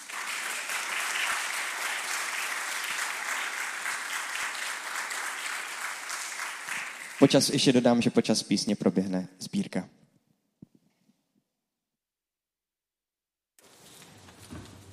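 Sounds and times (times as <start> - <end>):
applause: 0.0 - 8.0
speech: 7.2 - 10.0.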